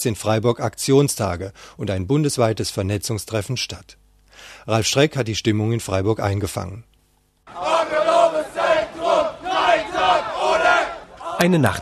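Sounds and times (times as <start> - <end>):
speech: 0.0 - 6.9, 7.5 - 8.0, 11.4 - 11.8
crowd of young demonstrators chanting in street: 7.5 - 11.8.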